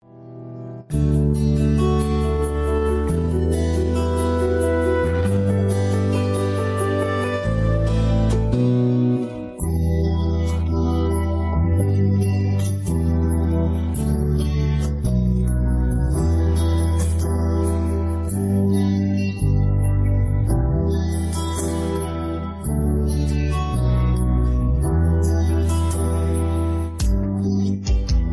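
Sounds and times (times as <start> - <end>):
Malayalam music album track with vocals removed: 0.0 - 28.3.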